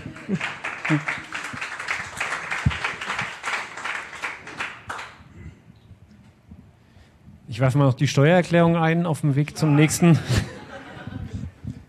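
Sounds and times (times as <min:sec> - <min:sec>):
laughter: 0:00.0 - 0:01.5, 0:09.6 - 0:11.8
applause: 0:00.0 - 0:05.3
speech: 0:00.3 - 0:01.2, 0:07.6 - 0:10.5.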